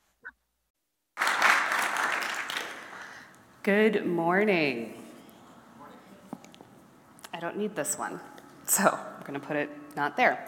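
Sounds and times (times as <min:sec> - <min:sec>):
audience applause welcoming a woman speaker: 0:01.2 - 0:03.3
speech: 0:03.6 - 0:05.0, 0:07.4 - 0:10.4.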